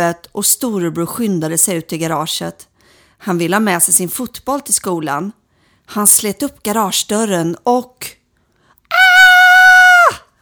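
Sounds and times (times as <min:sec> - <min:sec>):
speech: 0:00.0 - 0:08.2
loud high-pitched scream: 0:08.9 - 0:10.3.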